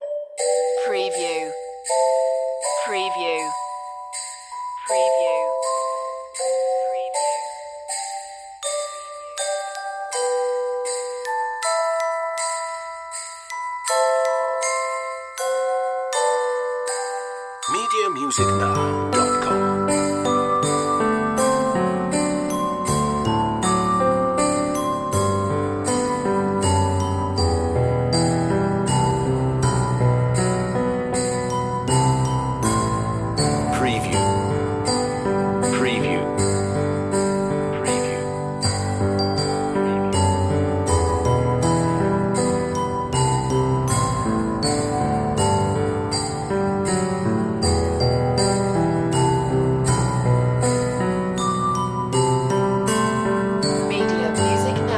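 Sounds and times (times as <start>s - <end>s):
Christmas carol as on-hold music: 0.0s - 54.9s.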